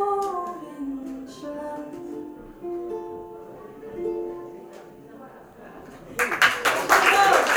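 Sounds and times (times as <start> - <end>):
person singing a song in Gaelic: 0.0 - 5.1
ukulele: 0.0 - 7.4.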